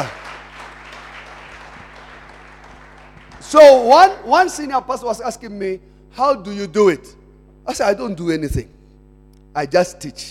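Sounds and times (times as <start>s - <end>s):
audience clapping: 0.0s - 4.2s
speech: 3.5s - 8.8s, 9.6s - 10.2s.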